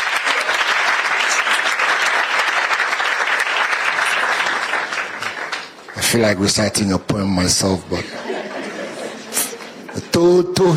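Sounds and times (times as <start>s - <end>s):
audience applause: 0.0s - 6.4s
speech: 6.1s - 8.2s, 10.2s - 10.7s
laughter: 8.0s - 10.2s.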